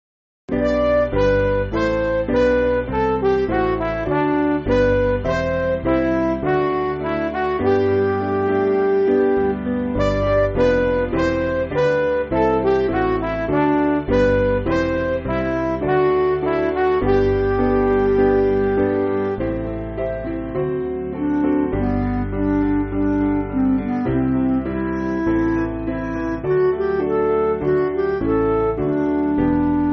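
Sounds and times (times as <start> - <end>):
MIDI backing music for churches: 0.5 - 29.9.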